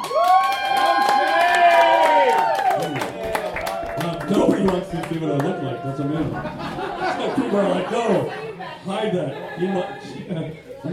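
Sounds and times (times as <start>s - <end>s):
crowd clapping: 0.0s - 5.8s
crowd cheering and whooping: 0.0s - 8.5s
speech: 4.3s - 10.9s
laughter: 5.7s - 10.7s.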